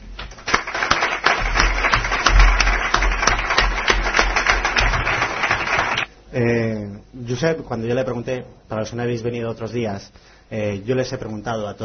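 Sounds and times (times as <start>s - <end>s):
audience applause: 0.3s - 6.1s
speech: 6.4s - 6.6s, 7.3s - 11.8s.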